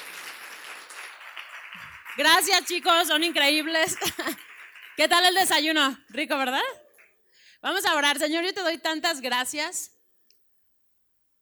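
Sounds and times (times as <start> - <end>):
crowd applauding: 0.0 - 5.8
speech: 2.2 - 6.8, 7.6 - 10.0
laughter: 3.9 - 4.5.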